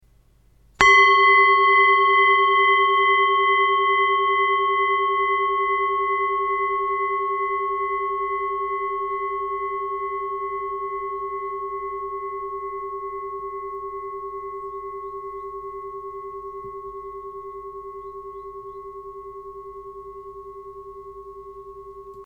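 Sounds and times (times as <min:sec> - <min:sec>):
singing bowl: 0:00.8 - 0:22.2.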